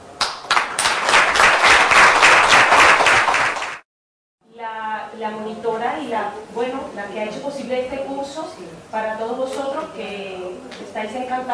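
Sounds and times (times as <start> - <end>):
audience applause: 0.2 - 3.8
speech: 5.2 - 11.5.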